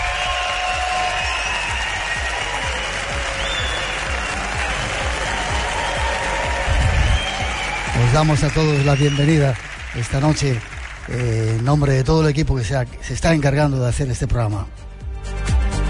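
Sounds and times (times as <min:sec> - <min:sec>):
theatre audience applause in Murcia: 0:00.0 - 0:12.4
speech: 0:08.1 - 0:14.8.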